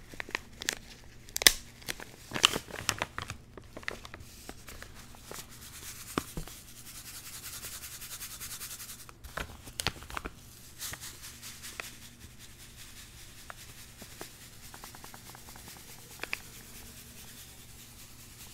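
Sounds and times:
Icnbuys zen garden being unboxed: 0:00.0 - 0:06.5, 0:09.2 - 0:11.1, 0:14.0 - 0:16.9.

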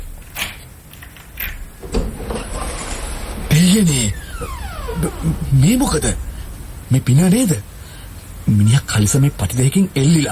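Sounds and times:
door opening with clunks and scrapes: 0:01.3 - 0:06.7
low steady rumble: 0:01.5 - 0:09.8
speech: 0:03.6 - 0:06.3, 0:06.9 - 0:07.7, 0:08.5 - 0:10.3.

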